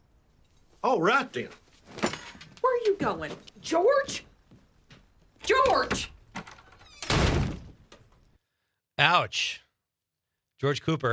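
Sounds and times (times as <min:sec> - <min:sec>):
speech: 0:00.8 - 0:02.1, 0:02.9 - 0:04.3, 0:05.5 - 0:06.1, 0:09.0 - 0:09.6, 0:10.6 - 0:11.1
door slamming shut: 0:05.5 - 0:08.1.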